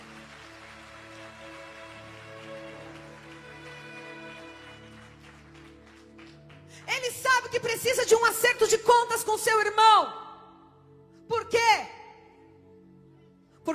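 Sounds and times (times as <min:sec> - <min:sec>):
audience clapping: 0:00.0 - 0:07.2
speech: 0:06.9 - 0:10.2.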